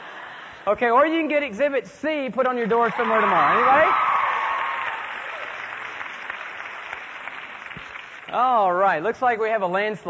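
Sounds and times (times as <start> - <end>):
speech: 0.7 - 4.1, 8.3 - 10.0
crowd clapping: 2.8 - 8.8.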